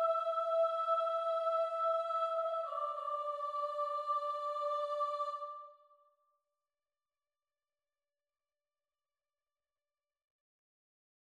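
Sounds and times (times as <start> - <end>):
soprano voice: 0.0 - 5.6.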